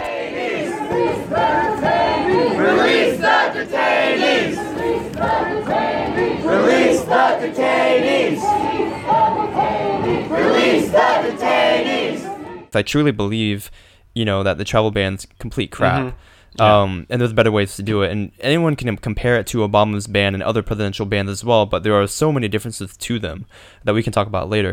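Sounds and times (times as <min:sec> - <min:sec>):
large protest crowd chanting and cheering: 0:00.0 - 0:12.7
speech: 0:10.3 - 0:24.7.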